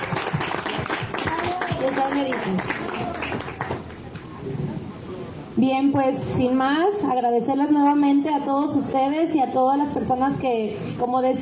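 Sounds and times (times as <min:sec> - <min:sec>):
crowd applauding for the band: 0:00.0 - 0:04.2
speech: 0:01.8 - 0:03.5, 0:05.6 - 0:11.4.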